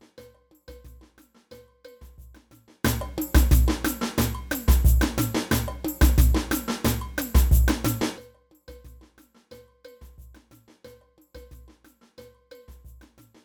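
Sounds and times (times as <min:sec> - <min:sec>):
cowbell in a samba band: 0:00.0 - 0:13.4
samba band playing: 0:02.8 - 0:08.2.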